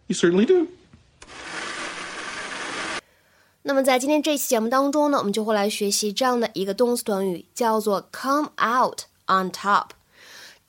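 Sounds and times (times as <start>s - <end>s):
speech: 0.1s - 0.8s, 3.6s - 10.0s
blender whirring making a smoothie: 1.2s - 3.0s.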